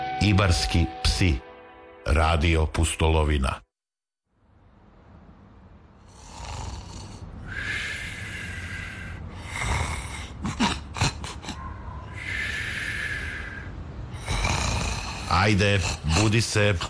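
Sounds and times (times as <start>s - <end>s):
speech: 0.2s - 1.5s, 2.0s - 3.7s, 15.4s - 16.8s
loud raspy snoring: 6.0s - 11.4s, 12.1s - 16.8s
snorting sniffs: 6.2s - 7.3s, 8.2s - 13.5s, 14.2s - 16.2s.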